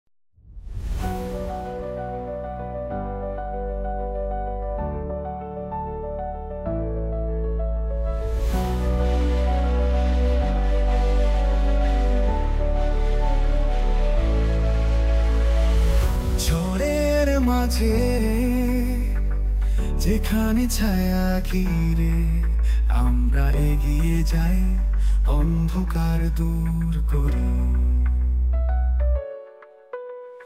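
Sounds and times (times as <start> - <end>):
Bengali bhakti music: 0.8 - 30.4.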